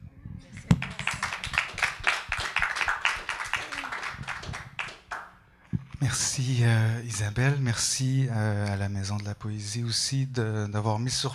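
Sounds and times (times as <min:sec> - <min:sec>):
audience applause: 0:00.6 - 0:05.3
speech: 0:06.0 - 0:11.3.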